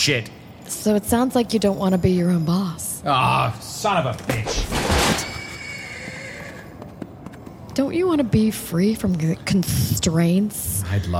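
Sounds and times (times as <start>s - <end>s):
speech: 0.0s - 4.7s, 7.8s - 11.1s
horse neighing: 5.0s - 6.9s.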